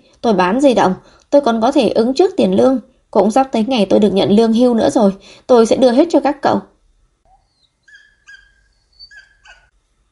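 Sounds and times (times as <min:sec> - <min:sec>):
speech: 0:00.2 - 0:06.7
dog whimpering: 0:07.3 - 0:09.7.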